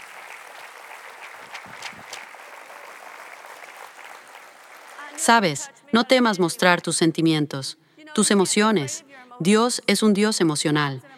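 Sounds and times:
audience applause: 0.0 - 5.7
speech: 5.2 - 11.1.

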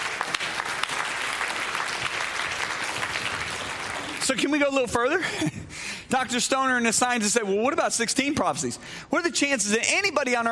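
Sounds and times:
audience clapping: 0.0 - 4.7
speech: 4.3 - 10.5.

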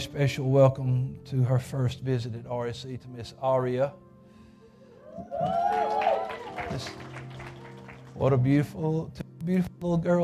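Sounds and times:
speech: 0.0 - 4.1, 5.2 - 5.9, 6.7 - 7.1, 8.2 - 10.2
person whooping: 5.0 - 7.0
church congregation applauding to welcome first-time visitors: 5.0 - 8.7.

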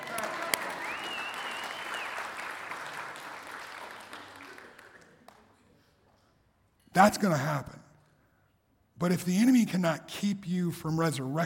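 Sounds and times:
audience applause: 0.0 - 5.5
speech: 7.0 - 7.8, 9.0 - 11.4.

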